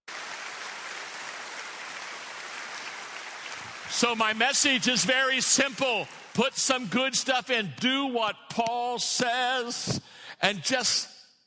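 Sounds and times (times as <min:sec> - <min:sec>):
audience applause: 0:00.1 - 0:06.4
speech: 0:03.9 - 0:11.1.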